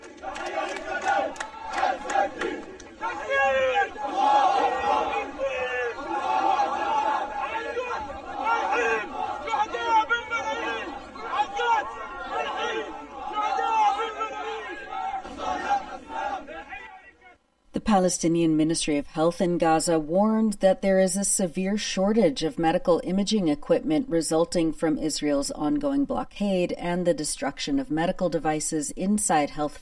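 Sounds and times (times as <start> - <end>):
massive crowd of mourners shouting at a funeral procession: 0.0 - 17.4
speech: 18.0 - 29.8.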